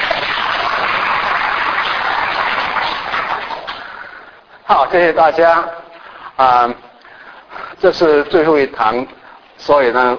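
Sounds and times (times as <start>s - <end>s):
audience applause: 0.0s - 4.2s
speech: 4.7s - 5.8s, 6.4s - 6.9s, 7.8s - 10.1s.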